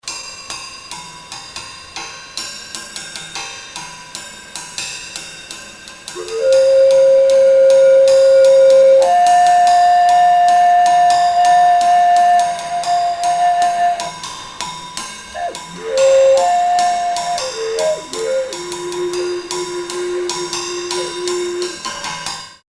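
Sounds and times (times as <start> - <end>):
overtone flute downshift: 6.1 - 14.4, 15.3 - 22.0.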